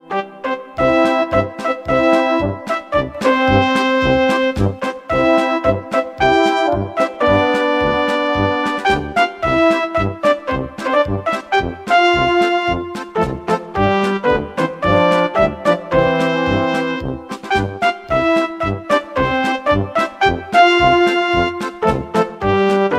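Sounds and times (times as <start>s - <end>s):
party sound: 0.1s - 22.9s.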